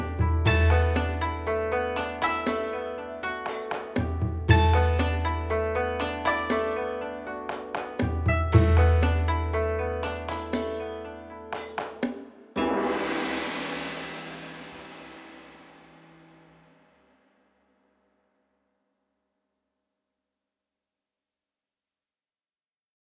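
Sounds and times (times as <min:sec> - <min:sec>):
instrumental music: 0:00.0 - 0:16.9.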